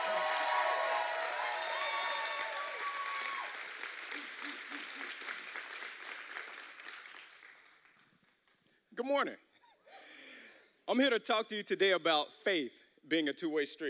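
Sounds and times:
church congregation applauding a welcome: 0.0 - 8.6
speech: 9.0 - 9.4, 10.9 - 13.8.

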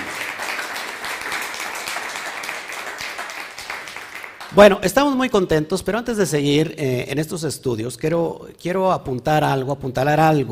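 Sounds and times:
loud applause: 0.0 - 4.8
speech: 4.5 - 10.5.

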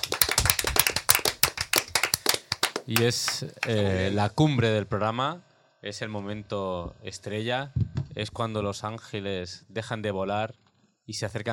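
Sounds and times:
applause: 0.0 - 3.8
speech: 2.9 - 11.5.

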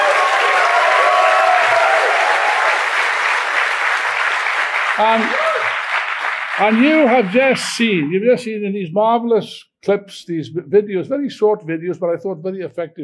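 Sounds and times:
audience applause: 0.0 - 8.1
speech: 5.0 - 5.4, 6.6 - 13.0.

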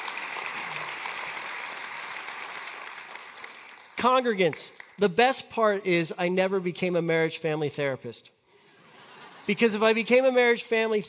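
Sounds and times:
audience applause: 0.0 - 5.0
speech: 4.0 - 8.4, 9.5 - 11.0
laughter: 8.8 - 9.9.

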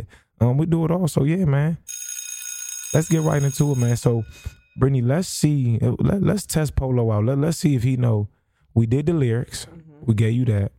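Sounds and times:
speech: 0.1 - 2.0, 2.9 - 10.7
high-pitched bell ringing: 1.9 - 5.4.

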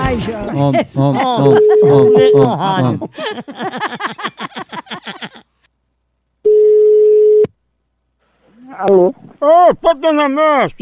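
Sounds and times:
speech: 0.1 - 5.3, 8.8 - 10.8
laughter: 0.3 - 5.6
outgoing telephone call ringback tone: 6.5 - 7.5.

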